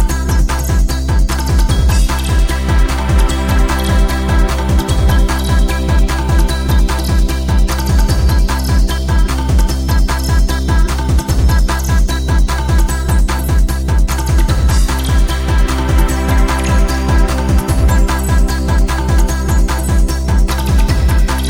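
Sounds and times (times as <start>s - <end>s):
drums: 0.0s - 21.4s.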